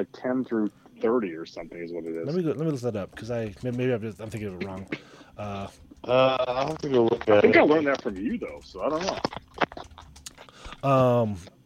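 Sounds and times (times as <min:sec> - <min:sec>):
speech: 0:00.0 - 0:09.4, 0:10.8 - 0:11.6
typing on a keyboard: 0:02.0 - 0:10.9.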